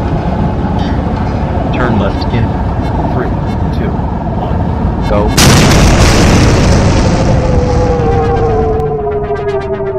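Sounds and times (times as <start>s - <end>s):
descending tonal whine: 0.0s - 9.9s
starship exploding in a video game: 5.4s - 8.7s.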